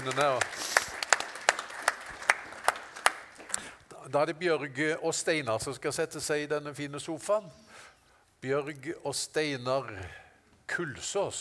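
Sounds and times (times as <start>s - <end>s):
speech: 0.0s - 0.7s, 4.1s - 11.3s
audience applause: 0.0s - 3.6s.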